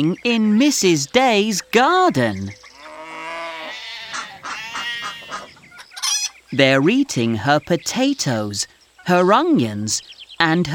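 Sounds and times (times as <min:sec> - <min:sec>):
speech: 0:00.0 - 0:02.6, 0:06.5 - 0:10.7
goats bleating: 0:02.8 - 0:06.3.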